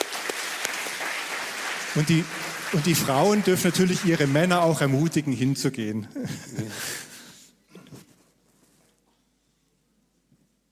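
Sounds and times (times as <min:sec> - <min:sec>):
crowd applause: 0:00.0 - 0:05.5
speech: 0:02.0 - 0:07.0.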